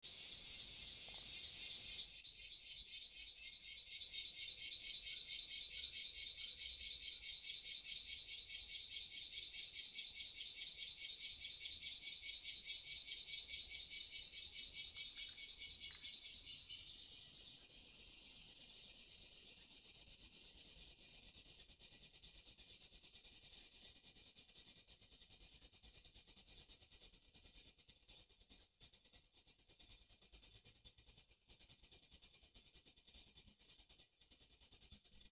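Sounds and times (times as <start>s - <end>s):
cicadas singing: 0.0s - 19.9s.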